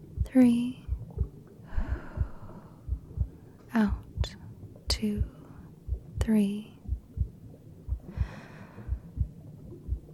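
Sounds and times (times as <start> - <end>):
quiet low rhythmic thumps: 0.0 - 10.1
speech: 0.3 - 0.8, 6.3 - 6.7
soft inhale during a guided breathing exercise: 1.6 - 2.9, 8.1 - 9.1.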